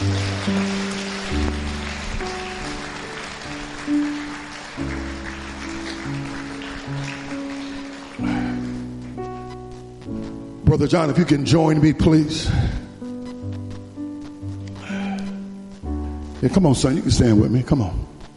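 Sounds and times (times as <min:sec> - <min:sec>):
audience clapping hands: 0:00.0 - 0:09.9
speech: 0:00.5 - 0:00.7, 0:10.7 - 0:12.8, 0:16.4 - 0:18.2.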